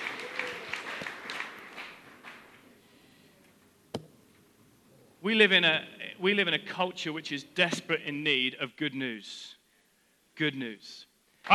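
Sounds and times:
audience applause: 0:00.0 - 0:02.4
speech: 0:05.2 - 0:09.6, 0:10.4 - 0:11.5.

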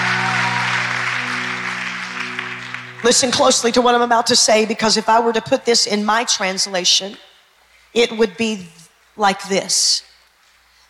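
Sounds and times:
audience hand clapping: 0:00.0 - 0:04.1
speech: 0:03.0 - 0:07.3, 0:07.9 - 0:10.1.

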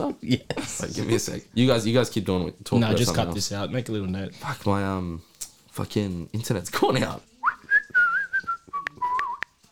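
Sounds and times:
speech: 0:00.1 - 0:07.3
person whistling in imitation of an Australian parrot: 0:07.4 - 0:09.5.

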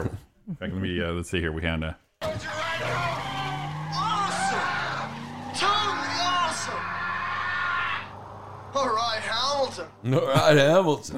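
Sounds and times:
speech: 0:00.7 - 0:03.2, 0:08.7 - 0:11.1
car tires skidding and squealing: 0:02.2 - 0:10.0.

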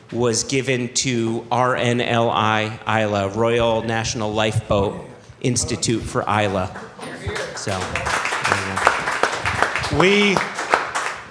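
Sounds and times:
speech: 0:00.1 - 0:06.9, 0:07.6 - 0:09.0, 0:09.9 - 0:10.6
laughter: 0:03.8 - 0:11.2
spontaneous round of applause: 0:06.5 - 0:11.2.

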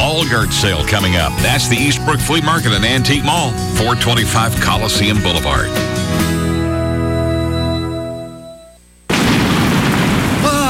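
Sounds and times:
speech: 0:00.2 - 0:06.3
sustained droning musical chord: 0:01.8 - 0:08.8
thunder boom: 0:09.1 - 0:10.6.

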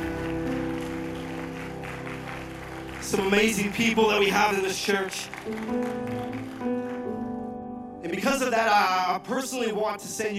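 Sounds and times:
audience applause: 0:00.0 - 0:07.3
speech: 0:03.1 - 0:06.5, 0:08.2 - 0:10.3.

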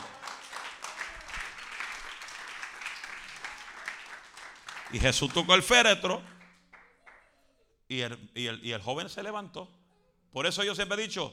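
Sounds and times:
audience applause: 0:00.0 - 0:07.3
speech: 0:04.9 - 0:06.3, 0:07.9 - 0:11.3.

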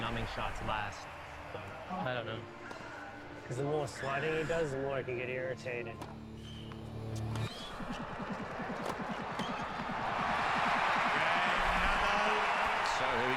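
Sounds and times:
tennis crowd cheering: 0:00.0 - 0:04.0, 0:07.5 - 0:13.3
speech: 0:00.2 - 0:02.8, 0:03.5 - 0:06.2.

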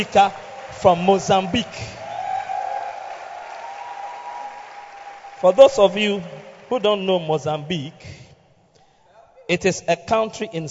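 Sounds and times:
speech: 0:00.0 - 0:02.0, 0:05.4 - 0:08.2, 0:09.5 - 0:10.6
audience clapping: 0:00.0 - 0:07.8.

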